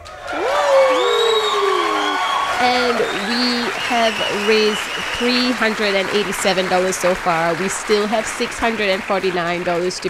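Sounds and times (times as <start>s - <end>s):
crowd cheering and whooping: 0.0s - 8.0s
crowd clapping: 0.0s - 10.0s
speech: 2.6s - 10.0s.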